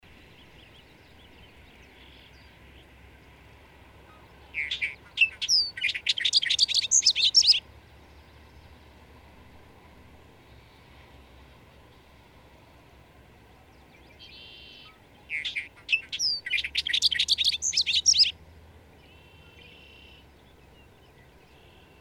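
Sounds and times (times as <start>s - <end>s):
bird song chirps and trills: 0.2s - 3.4s, 4.0s - 8.8s, 13.6s - 21.9s.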